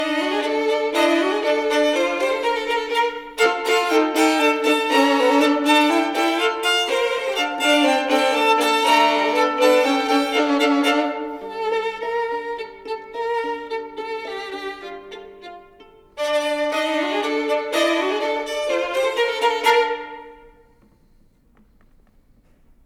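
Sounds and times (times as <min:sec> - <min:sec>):
two violins playing a burlesque duo: 0:00.0 - 0:20.8.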